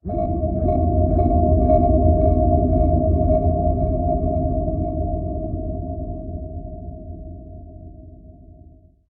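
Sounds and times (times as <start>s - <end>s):
ambient music: 0.0s - 5.6s.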